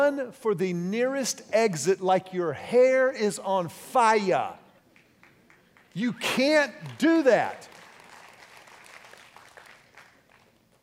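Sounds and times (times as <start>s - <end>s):
speech: 0.1s - 4.6s, 6.0s - 7.8s
audience clapping: 4.9s - 10.8s.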